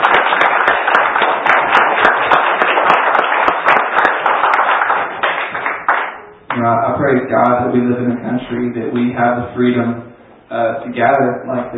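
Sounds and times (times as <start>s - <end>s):
audience clapping hands: 0.0s - 6.6s
speech: 6.6s - 11.7s.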